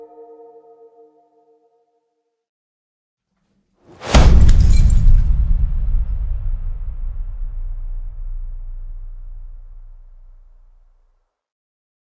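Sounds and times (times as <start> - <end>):
impact: 3.9 - 11.0.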